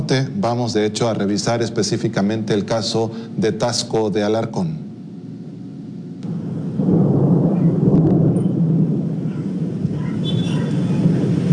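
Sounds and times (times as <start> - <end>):
speech: 0.1 - 4.8
thunder from an electrical storm in Taxco: 6.2 - 11.5.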